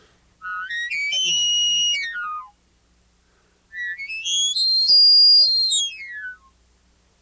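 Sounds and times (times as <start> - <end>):
game call imitating a bull elk bugle: 0.4 - 2.6, 3.7 - 6.5.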